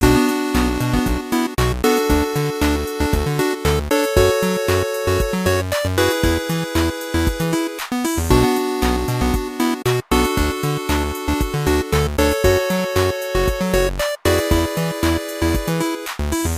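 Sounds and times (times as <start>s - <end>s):
funk music: 0.0s - 16.5s.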